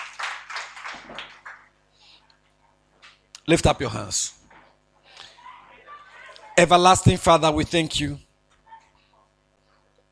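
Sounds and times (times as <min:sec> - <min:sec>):
crowd clapping: 0:00.0 - 0:01.7
speech: 0:03.5 - 0:04.4, 0:06.6 - 0:08.2.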